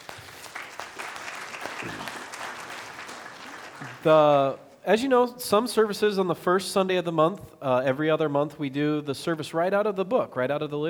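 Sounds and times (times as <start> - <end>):
audience clapping: 0.0 - 4.6
speech: 1.8 - 2.1, 4.0 - 10.8.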